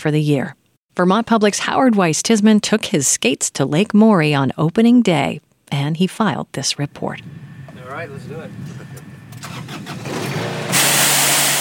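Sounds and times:
speech: 0.0s - 10.6s
lawnmower engine starting: 8.5s - 11.6s.

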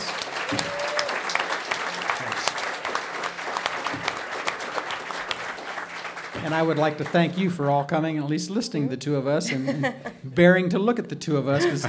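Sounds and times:
audience clapping: 0.0s - 7.8s
speech: 0.5s - 0.8s, 6.4s - 11.8s
laughter: 9.3s - 10.3s, 11.5s - 11.8s.

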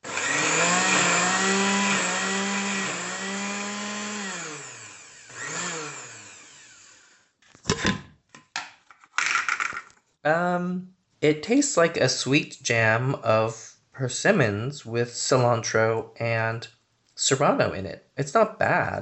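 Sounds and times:
blender blending vegetables and herbs: 0.0s - 7.3s
speech: 10.2s - 19.0s.

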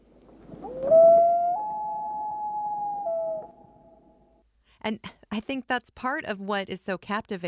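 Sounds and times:
wail call of a loon: 0.6s - 4.4s
speech: 4.8s - 7.4s.

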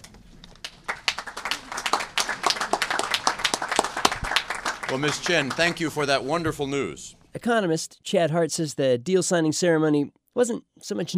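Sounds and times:
audience applause: 0.6s - 6.8s
speech: 4.9s - 11.1s.

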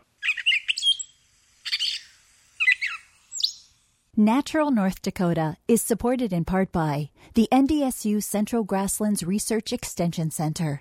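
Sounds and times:
gray catbird singing: 0.0s - 3.8s
speech: 4.2s - 10.7s.

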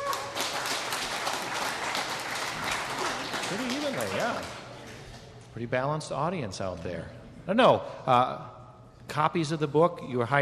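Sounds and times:
audience clapping: 0.0s - 5.2s
speech: 3.5s - 4.6s, 5.6s - 8.5s, 9.1s - 10.4s.

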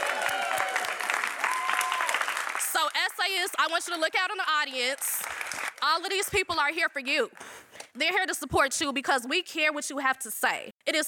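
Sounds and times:
audience whooping and shouting: 0.0s - 2.5s
audience clapping at an event celebrating essay writers: 0.0s - 4.0s, 4.8s - 6.0s
speech: 3.1s - 7.4s, 8.0s - 11.0s.

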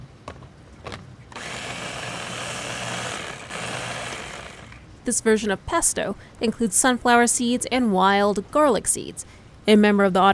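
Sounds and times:
blender running with lamb's quarters: 1.3s - 4.8s
speech: 5.0s - 10.3s.

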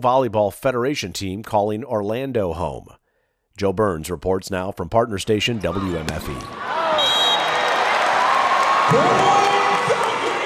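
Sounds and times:
speech: 0.0s - 3.0s, 3.6s - 6.8s, 8.9s - 9.3s
crowd cheering at a volleyball match: 5.6s - 10.4s.

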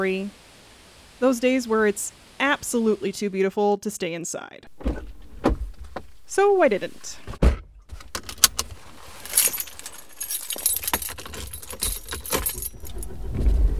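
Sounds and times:
speech: 0.0s - 0.4s, 1.2s - 5.1s, 6.4s - 7.4s
keys jangling while getting into a car: 9.2s - 13.1s
soft thuds and shuffling: 9.2s - 13.1s.

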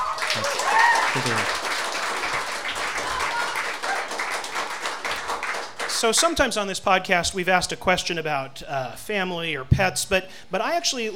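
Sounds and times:
audience applause at a live evening event: 0.0s - 6.0s
speech: 0.4s - 1.7s, 6.0s - 11.1s.

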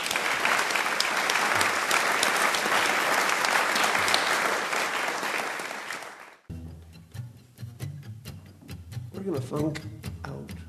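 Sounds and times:
audience applause at the Matthews Opera House in Spearfish, South Dakota: 0.0s - 6.5s
speech: 9.3s - 10.1s.

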